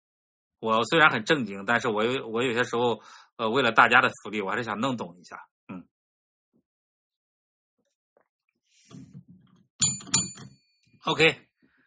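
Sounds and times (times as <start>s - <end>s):
speech: 0.6s - 5.9s, 11.0s - 11.5s
small bell ringing: 9.8s - 10.7s.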